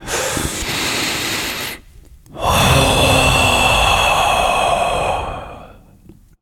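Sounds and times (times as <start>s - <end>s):
non-verbal breath voice: 0.0s - 6.3s.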